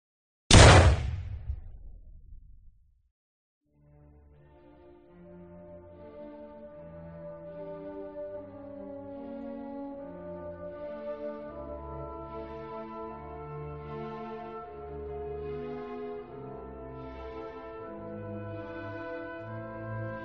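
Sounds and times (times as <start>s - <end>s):
revolver shot fired by a man in black: 0.5s - 2.6s
soft music: 3.8s - 20.2s.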